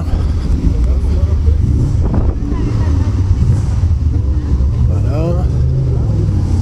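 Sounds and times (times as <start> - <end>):
wind buffeting: 0.0 - 5.0
voices: 0.0 - 6.4
Porsche racing car engine roaring: 0.0 - 6.5.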